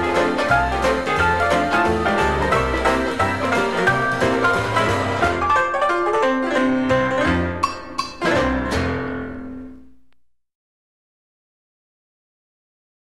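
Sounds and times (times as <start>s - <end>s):
band playing: 0.0s - 9.6s
banjo: 0.0s - 9.6s
rinky-tink piano: 0.0s - 9.6s.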